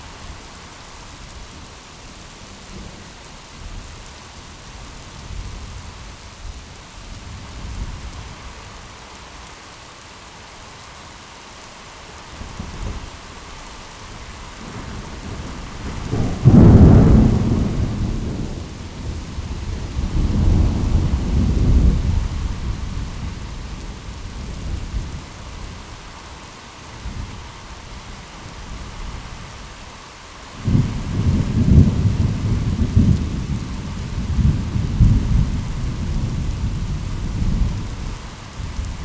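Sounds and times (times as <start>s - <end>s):
thunder in a thunderstorm: 14.6s - 23.5s, 30.6s - 39.0s.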